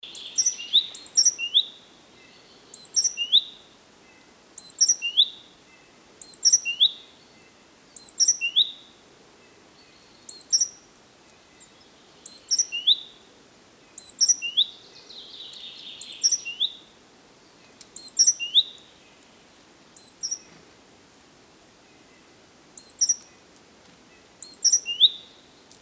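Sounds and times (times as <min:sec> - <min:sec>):
soft background hiss: 0:00.0 - 0:25.7
great tit chirping: 0:00.1 - 0:03.5, 0:04.1 - 0:05.3, 0:08.0 - 0:08.7, 0:09.8 - 0:10.8, 0:11.6 - 0:13.0, 0:14.0 - 0:16.8, 0:18.0 - 0:19.3, 0:20.0 - 0:20.5, 0:22.8 - 0:23.3, 0:24.4 - 0:25.4.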